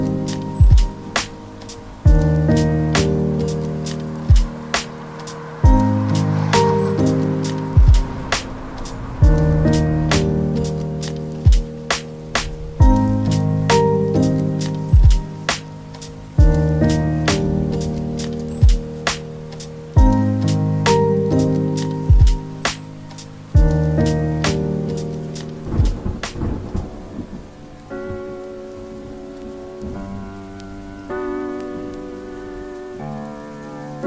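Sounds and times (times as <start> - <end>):
music: 0.0 - 34.0
rain: 0.0 - 34.0
thunder: 4.3 - 13.1, 25.6 - 27.5.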